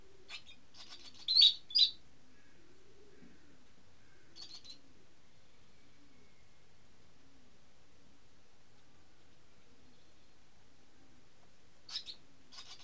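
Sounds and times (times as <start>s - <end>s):
bird calls as high chirps and buzzy bursts: 0.3s - 2.0s, 4.4s - 4.8s, 11.9s - 12.8s.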